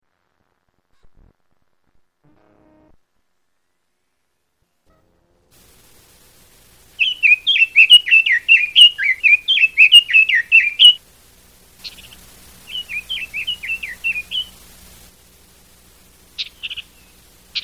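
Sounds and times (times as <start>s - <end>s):
red-billed leiothrix warbling song: 7.0s - 11.0s, 11.8s - 14.7s.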